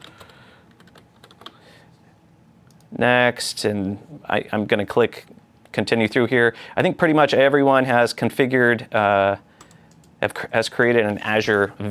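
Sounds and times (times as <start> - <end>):
typing a password on a computer keyboard setting up an Azure virtual machine: 0.0 - 1.6
speech: 3.0 - 9.5, 10.2 - 11.8.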